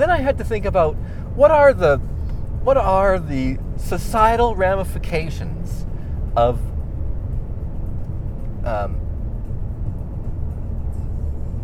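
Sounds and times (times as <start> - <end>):
speech: 0.0 - 5.8, 6.4 - 6.7, 8.6 - 9.0
car being driven with a low rumble: 0.0 - 11.6.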